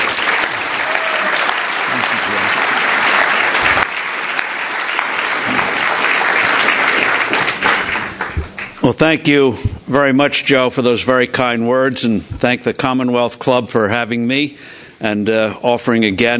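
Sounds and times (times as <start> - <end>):
audience applause welcoming Steve Forbes at a Commonwealth Club event: 0.0 - 8.8
speech: 8.8 - 16.3.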